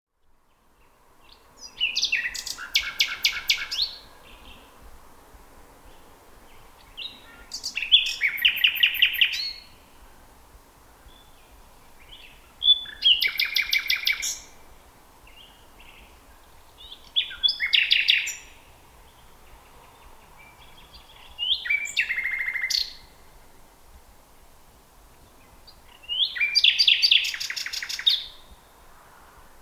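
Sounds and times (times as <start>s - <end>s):
common nightingale Luscinia megarhynchos singing: 1.2s - 4.8s, 5.8s - 10.2s, 11.0s - 23.3s, 25.2s - 28.6s.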